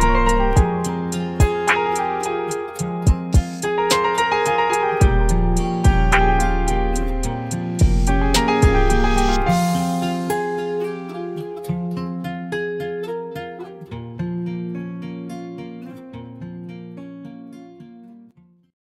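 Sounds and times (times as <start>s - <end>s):
sad piano piece: 0.0s - 13.4s.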